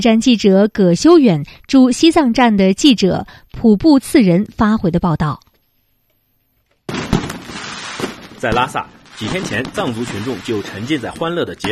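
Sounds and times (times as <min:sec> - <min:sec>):
speech: 0:00.0 - 0:05.4, 0:08.4 - 0:11.6
firecrackers exploding: 0:06.9 - 0:11.6.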